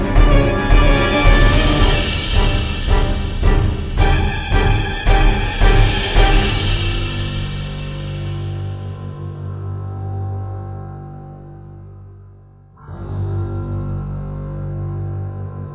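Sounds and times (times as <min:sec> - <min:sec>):
suspense and horror music stabs: 0:00.0 - 0:09.1.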